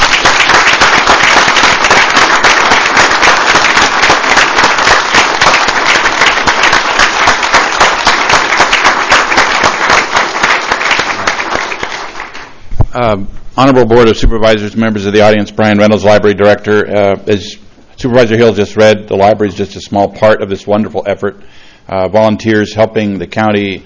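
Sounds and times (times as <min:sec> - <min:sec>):
audience applause: 0:00.0 - 0:12.6
speech: 0:13.0 - 0:23.8.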